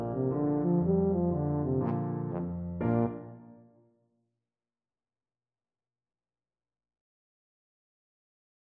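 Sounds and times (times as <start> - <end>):
tuba playing: 0.2 - 3.4.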